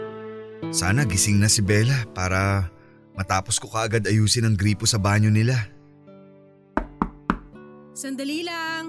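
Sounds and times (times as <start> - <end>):
speech: 0.7 - 5.7, 8.0 - 8.8
knocking on a door: 6.8 - 7.6.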